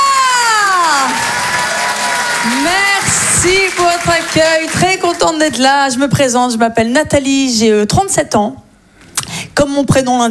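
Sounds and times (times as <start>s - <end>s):
crowd cheering and applause for a comedian at a French stand-up show: 0.0s - 5.7s
speech: 2.7s - 8.6s, 9.6s - 10.2s.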